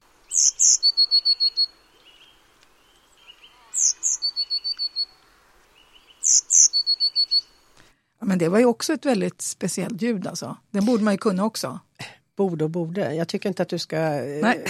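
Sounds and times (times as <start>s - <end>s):
Eurasian blue tit singing: 0.2s - 7.7s
speech: 8.3s - 14.6s.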